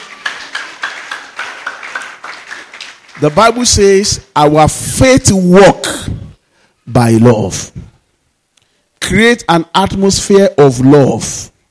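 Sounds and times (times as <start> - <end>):
audience clapping hands: 0.0 - 4.1
speech: 3.2 - 5.9, 6.9 - 7.8, 9.1 - 11.5.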